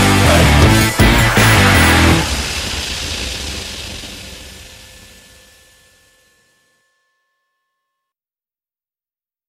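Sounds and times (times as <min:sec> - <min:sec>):
action and sport rock music intro: 0:00.0 - 0:06.2.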